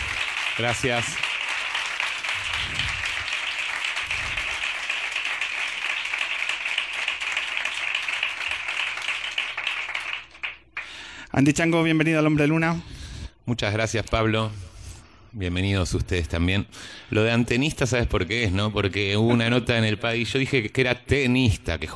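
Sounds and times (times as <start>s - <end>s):
audience applause welcoming a guest: 0.0s - 11.0s
speech: 0.6s - 1.3s, 11.4s - 14.7s, 15.3s - 21.9s.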